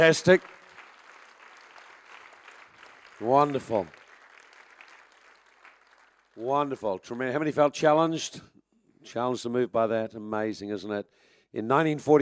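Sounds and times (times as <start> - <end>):
speech: 0.0 - 0.6, 3.2 - 4.0, 6.4 - 12.2
audience applause: 0.0 - 6.8.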